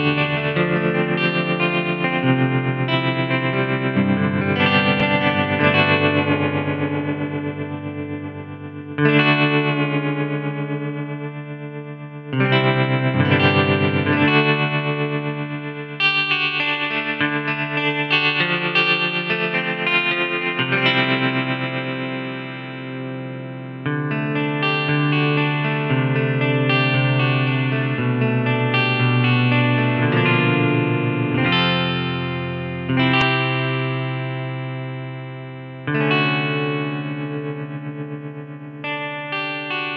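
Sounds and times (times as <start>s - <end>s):
electric guitar through a synthesizer: 0.0s - 39.9s.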